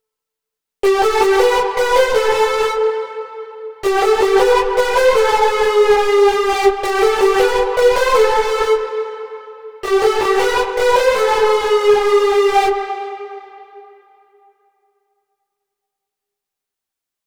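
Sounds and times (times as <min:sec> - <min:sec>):
lead melody: 0:00.8 - 0:13.6.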